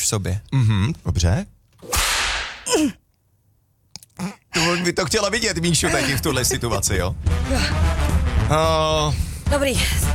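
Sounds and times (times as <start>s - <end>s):
speech: 0.0s - 1.6s, 2.7s - 3.0s, 4.2s - 10.1s
whip lash striking a person: 1.8s - 2.7s.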